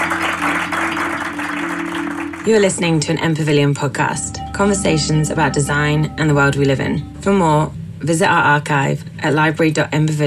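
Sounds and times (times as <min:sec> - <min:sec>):
people clapping: 0:00.0 - 0:03.1
speech: 0:02.4 - 0:10.2.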